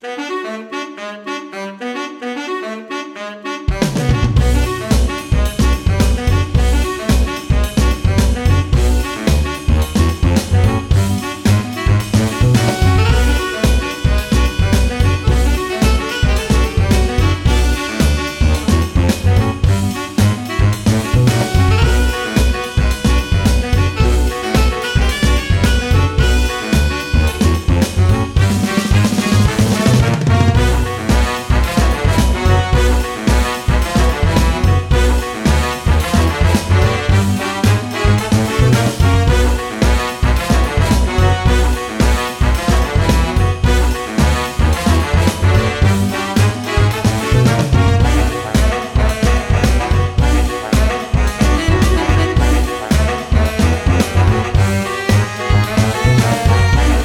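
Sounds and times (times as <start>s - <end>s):
salsa tango music: 0.2s - 57.0s.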